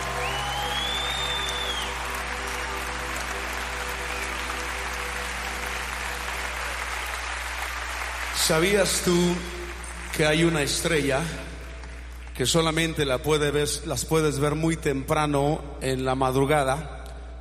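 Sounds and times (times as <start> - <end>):
audience applause: 0.0 - 12.6
speech: 8.5 - 9.6, 10.2 - 11.4, 12.4 - 17.0.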